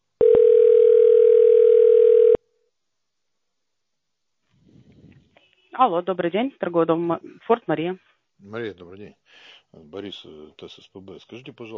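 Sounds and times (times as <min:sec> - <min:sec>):
telephone line tone while an automated system transfers a call: 0:00.2 - 0:02.4
speech: 0:05.8 - 0:11.7.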